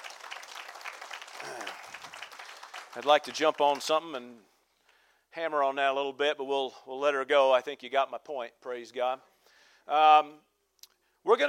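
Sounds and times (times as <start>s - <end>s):
audience applauding: 0.0s - 4.0s
speech: 2.9s - 4.5s, 5.3s - 10.5s, 11.2s - 11.4s.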